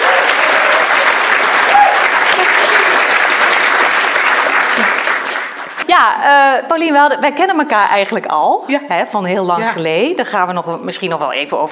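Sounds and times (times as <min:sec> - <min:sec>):
audience applause: 0:00.0 - 0:05.8
speech: 0:06.0 - 0:11.7.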